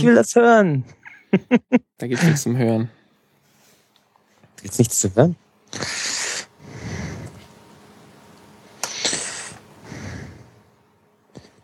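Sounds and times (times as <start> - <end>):
speech: 0.0 - 3.0, 4.6 - 6.0
heavy breathing into microphone: 5.7 - 7.6, 8.8 - 11.6.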